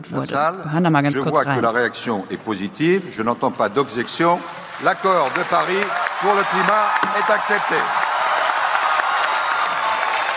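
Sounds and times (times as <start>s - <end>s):
speech: 0.0s - 8.1s
applause from delegates at climate conference: 3.8s - 10.3s.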